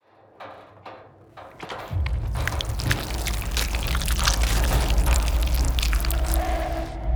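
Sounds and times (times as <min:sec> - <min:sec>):
rat eating: 0:01.9 - 0:07.0.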